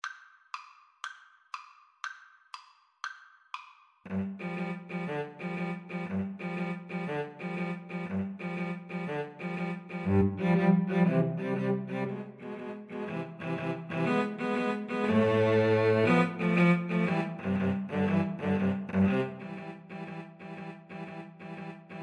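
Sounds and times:
cello trio: 4.1 - 22.0.

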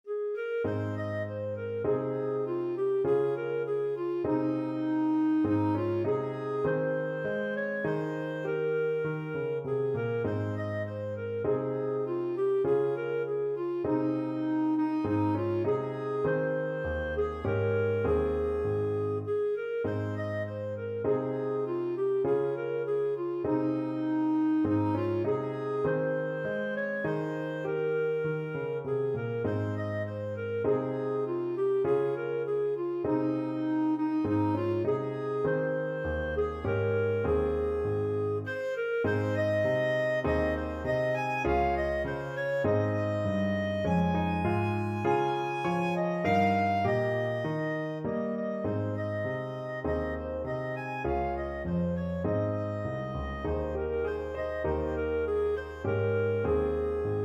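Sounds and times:
clarinet: 0.0 - 57.2.

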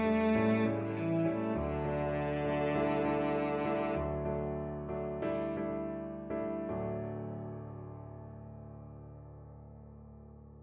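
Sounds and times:
violoncello: 0.0 - 7.2.

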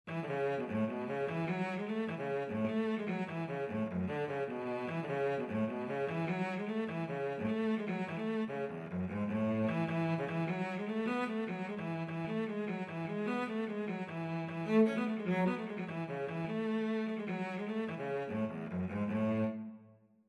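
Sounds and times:
cello: 0.1 - 20.0.

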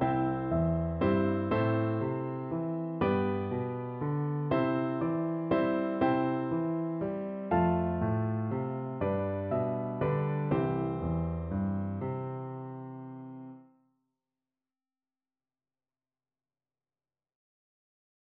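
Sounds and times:
piano duet: 0.0 - 13.6.

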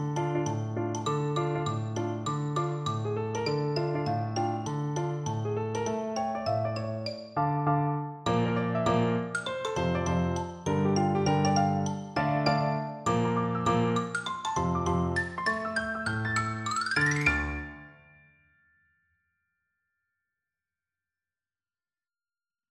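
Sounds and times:
percussion: 0.0 - 7.4, 8.3 - 18.3.

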